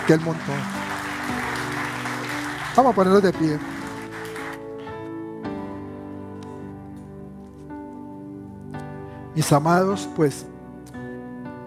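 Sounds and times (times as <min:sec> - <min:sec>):
audience applauding: 0:00.0 - 0:05.1
speech: 0:00.1 - 0:00.8, 0:02.8 - 0:03.7, 0:09.4 - 0:10.5.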